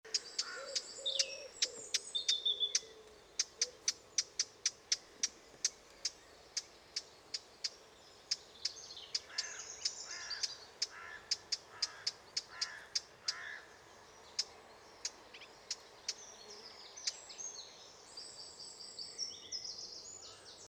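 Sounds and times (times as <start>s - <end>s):
small birds twittering and warbling: 0.0s - 20.6s
Eurasian blackcap tak calls: 0.1s - 13.6s.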